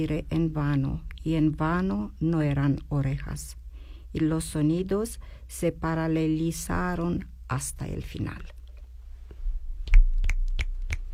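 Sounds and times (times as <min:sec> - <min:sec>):
speech: 0:00.0 - 0:08.6
low rumble: 0:00.0 - 0:11.1
finger snaps: 0:09.8 - 0:11.1.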